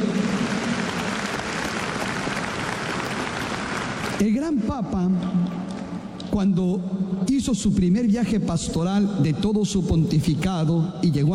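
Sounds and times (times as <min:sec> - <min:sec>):
audience applause: 0:00.0 - 0:04.2
speech: 0:04.2 - 0:05.6, 0:06.3 - 0:11.3.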